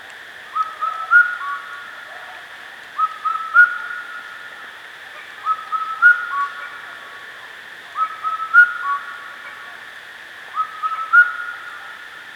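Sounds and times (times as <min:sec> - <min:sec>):
Indian cuckoo whistling its four-note song: 0:00.6 - 0:01.7, 0:03.0 - 0:04.1, 0:05.4 - 0:06.8, 0:08.0 - 0:09.2, 0:10.5 - 0:11.8.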